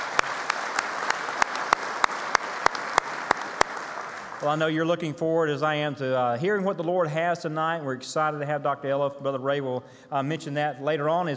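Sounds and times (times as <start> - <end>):
church congregation clapping to welcome visiting guests: 0.0 - 5.0
speech: 4.4 - 11.3.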